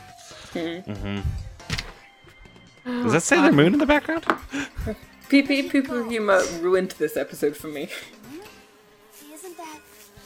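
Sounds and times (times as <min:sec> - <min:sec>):
speech: 0:00.5 - 0:01.5, 0:02.8 - 0:08.2
bug buzzing: 0:03.1 - 0:10.2.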